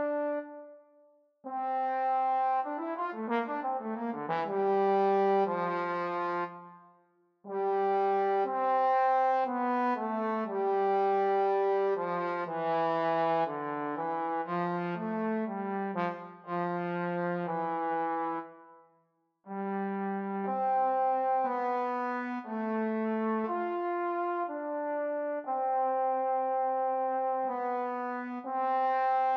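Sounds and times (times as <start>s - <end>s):
adagio trombone duet: 0.0s - 0.6s, 1.5s - 6.6s, 7.5s - 18.5s, 19.6s - 29.3s.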